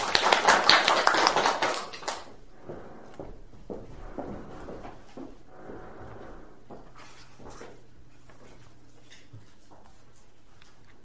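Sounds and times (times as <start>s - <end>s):
audience applause welcoming a speaker: 0.0s - 3.2s.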